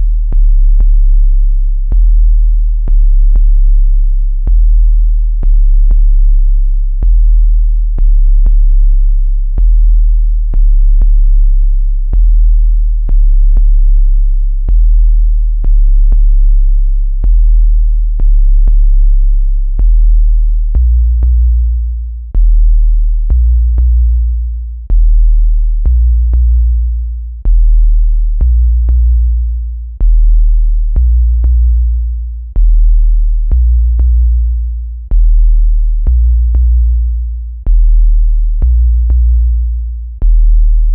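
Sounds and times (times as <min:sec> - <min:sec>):
bass sequence: 0:00.0 - 0:40.9.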